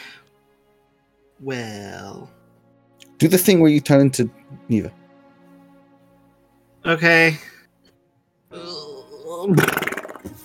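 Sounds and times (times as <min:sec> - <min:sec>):
speech: 0:01.4 - 0:02.4, 0:03.2 - 0:05.0, 0:06.8 - 0:07.5, 0:09.4 - 0:10.4
voice imitating a fart: 0:09.3 - 0:10.4.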